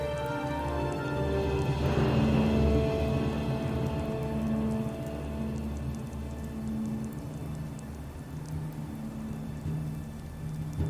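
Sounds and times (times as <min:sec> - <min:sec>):
rainy ambient music with held tones over a drone: 0:00.0 - 0:10.8
faint scattered ticks: 0:03.9 - 0:10.8.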